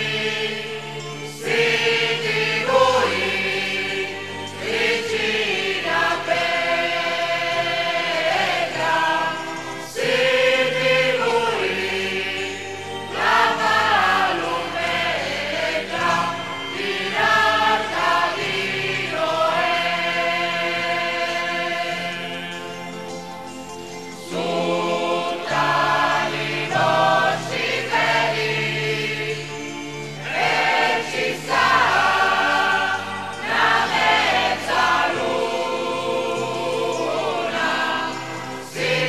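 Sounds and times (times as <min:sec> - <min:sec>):
people singing songs to the Madonna in a procession: 0:00.0 - 0:23.2, 0:24.2 - 0:39.0.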